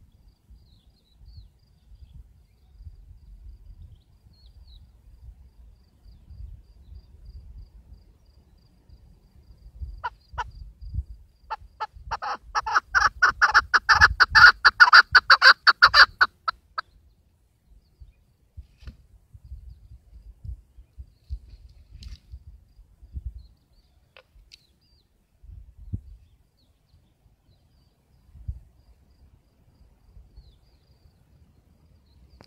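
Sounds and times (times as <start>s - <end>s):
keklik partridge calling: 11.5s - 17.1s.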